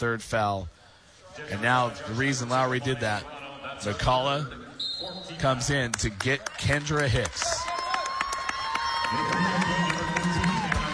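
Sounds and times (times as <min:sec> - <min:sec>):
speech: 0:00.0 - 0:00.8, 0:01.4 - 0:07.6, 0:09.1 - 0:09.8
Jesuit crowd ovation at basketball game: 0:06.0 - 0:10.9.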